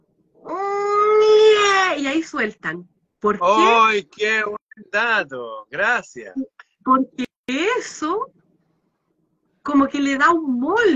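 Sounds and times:
voice imitating baby about to cry: 0:00.4 - 0:02.0
speech: 0:02.2 - 0:08.4, 0:09.6 - 0:10.9.

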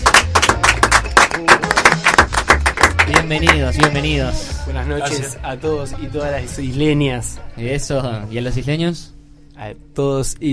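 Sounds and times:
audience applause: 0:00.0 - 0:03.6
speech: 0:03.1 - 0:10.5.

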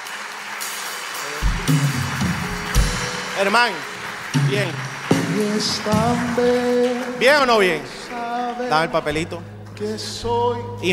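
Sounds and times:
audience applause: 0:00.0 - 0:09.1
speech: 0:01.3 - 0:02.3, 0:03.4 - 0:10.9.

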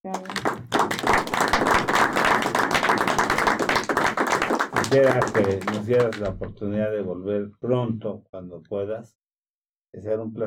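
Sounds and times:
crowd applause: 0:00.0 - 0:06.4
speech: 0:04.9 - 0:09.2, 0:09.9 - 0:10.4.

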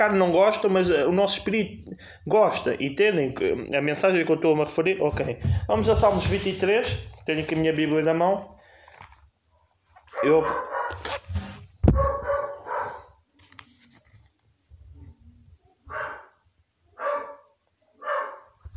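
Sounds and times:
speech: 0:00.0 - 0:08.6, 0:10.2 - 0:11.2
dog barking: 0:10.1 - 0:11.1, 0:11.9 - 0:13.2, 0:15.8 - 0:18.6.

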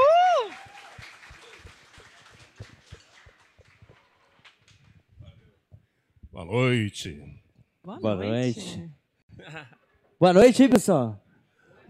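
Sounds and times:
applause: 0:00.0 - 0:05.1
speech: 0:06.4 - 0:11.2.

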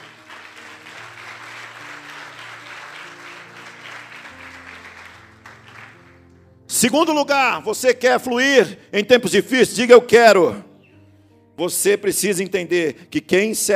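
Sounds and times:
audience applause: 0:00.0 - 0:06.4
speech: 0:06.8 - 0:10.7, 0:11.6 - 0:13.7.

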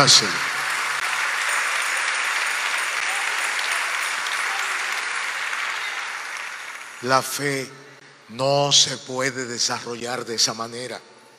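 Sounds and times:
speech: 0:00.0 - 0:00.5, 0:07.0 - 0:11.1
sustained crowd applause: 0:00.0 - 0:07.5.

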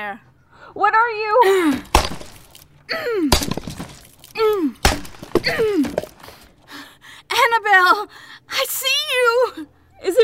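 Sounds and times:
speech: 0:00.0 - 0:01.9, 0:02.9 - 0:03.5, 0:07.6 - 0:10.2
debris crackling: 0:01.6 - 0:06.6
axe smashing through a wooden wall: 0:01.7 - 0:02.6, 0:03.2 - 0:06.5.

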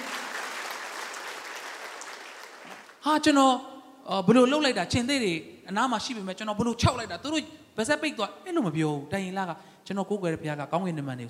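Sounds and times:
church congregation clapping in praise during a Sunday sermon: 0:00.0 - 0:03.0
speech: 0:03.0 - 0:11.2.

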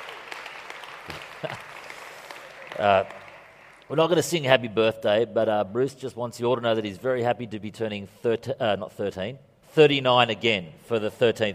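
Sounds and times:
audience applause: 0:00.0 - 0:03.9
speech: 0:02.8 - 0:03.2, 0:03.9 - 0:11.5.

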